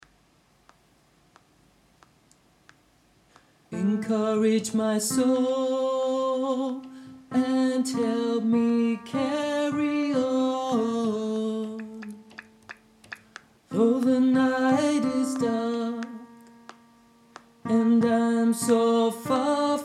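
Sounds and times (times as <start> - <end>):
tenor singing: 3.7 - 16.8, 17.4 - 19.8.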